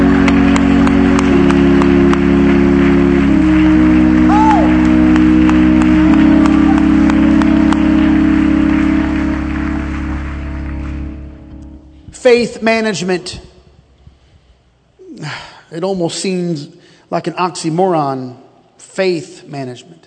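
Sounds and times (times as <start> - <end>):
audience clapping hands: 0.0 - 12.1
speech: 12.3 - 13.5, 15.7 - 18.4, 19.0 - 20.0.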